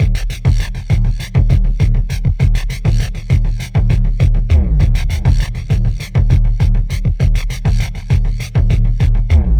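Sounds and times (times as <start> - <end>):
fuzz beat groove: 0.0 - 9.5.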